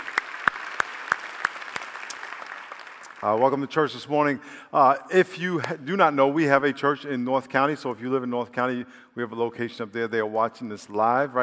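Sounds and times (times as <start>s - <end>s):
church congregation clapping in unison: 0.0s - 3.9s
speech: 3.2s - 11.4s.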